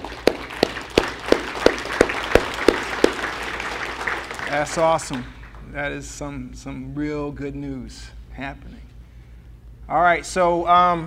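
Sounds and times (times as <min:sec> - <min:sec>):
rhythmic audience applause: 0:00.0 - 0:05.7
speech: 0:04.5 - 0:08.9, 0:09.9 - 0:11.0.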